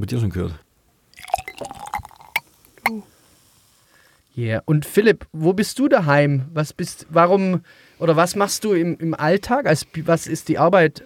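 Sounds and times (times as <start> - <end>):
speech: 0.0 - 0.6, 2.9 - 3.2, 4.4 - 11.0
beer pouring into glass: 1.1 - 3.0.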